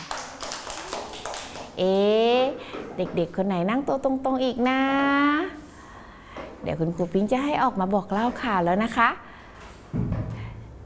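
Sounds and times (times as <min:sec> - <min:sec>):
children clapping in a classroom: 0:00.0 - 0:01.8
speech: 0:01.8 - 0:05.6, 0:06.6 - 0:09.2.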